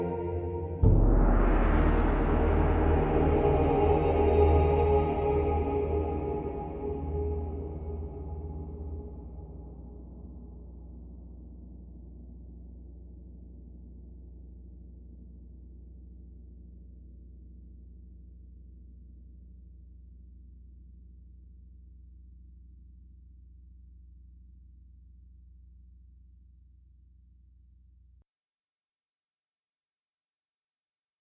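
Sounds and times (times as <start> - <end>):
dramatic choral production music: 0.0 - 10.8.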